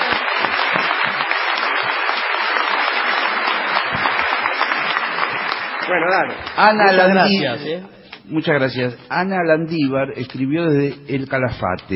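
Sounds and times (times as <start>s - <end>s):
audience applause: 0.0s - 7.2s
speech: 5.9s - 11.9s.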